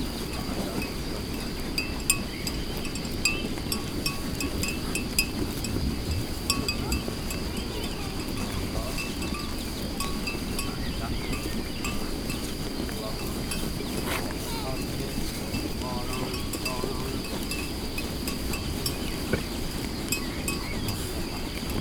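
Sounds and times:
shepherd on a farm: 0.0s - 21.8s
grazing sheep bleating in the distance on a farm: 6.6s - 12.5s, 13.2s - 17.2s.

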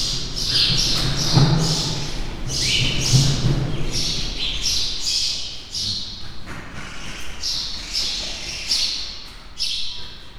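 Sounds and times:
sparrows wing flaps in Hortobágy National Park: 0.0s - 4.8s.

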